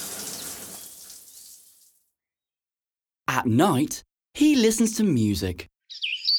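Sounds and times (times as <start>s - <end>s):
shower water running: 0.0s - 2.0s
speech: 3.4s - 6.2s.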